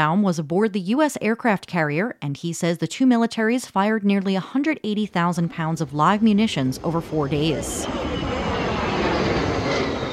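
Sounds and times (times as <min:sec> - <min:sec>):
speech: 0:00.0 - 0:08.4
U.S. jet fighter engine roaring over an aircraft carrier during a joint military exercise at sea: 0:05.2 - 0:10.1.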